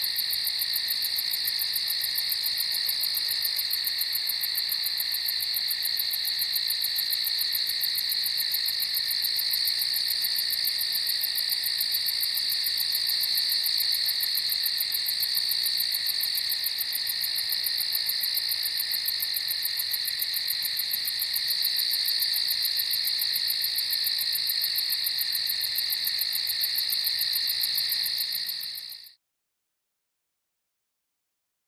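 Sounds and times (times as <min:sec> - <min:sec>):
crickets chirping at night on a farm: 0:00.0 - 0:29.2.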